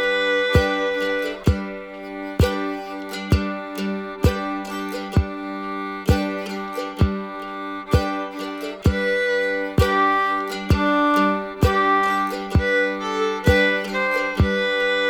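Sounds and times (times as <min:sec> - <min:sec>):
fiddle playing practice loops: 0:00.0 - 0:15.0.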